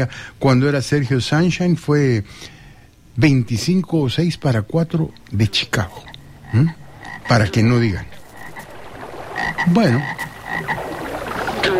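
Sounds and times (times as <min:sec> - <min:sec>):
speech: 0:00.0 - 0:02.6, 0:03.2 - 0:08.2, 0:09.6 - 0:10.8
frog croaking: 0:04.8 - 0:11.7.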